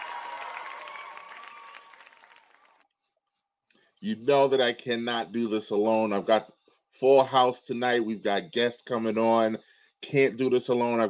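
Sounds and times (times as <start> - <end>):
studio audience applause: 0.0 - 2.9
speech: 4.0 - 11.0.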